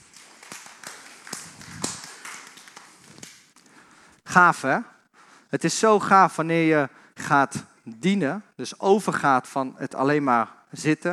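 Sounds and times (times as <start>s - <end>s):
audience applause: 0.0s - 3.4s
speech: 4.4s - 4.9s, 5.5s - 11.1s.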